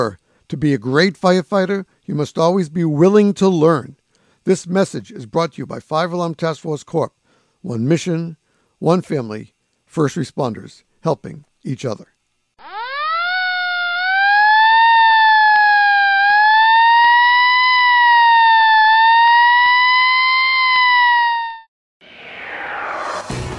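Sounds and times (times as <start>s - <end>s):
speech: 0.0s - 12.1s
fire engine sirens: 12.6s - 23.3s.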